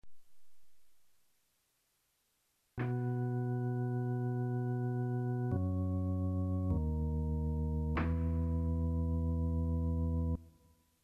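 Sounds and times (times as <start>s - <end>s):
organ intro: 2.8s - 10.4s.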